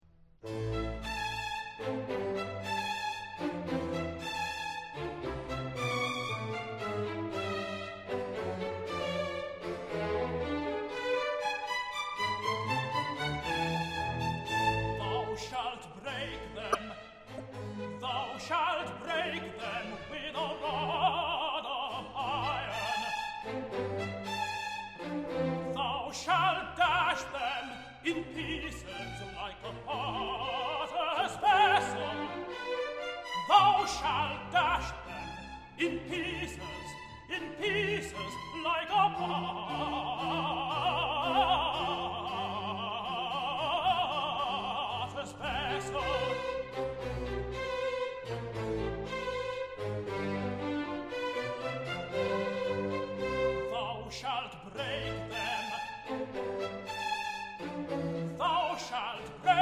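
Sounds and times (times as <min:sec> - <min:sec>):
symphony orchestra playing: 0:00.4 - 0:59.6.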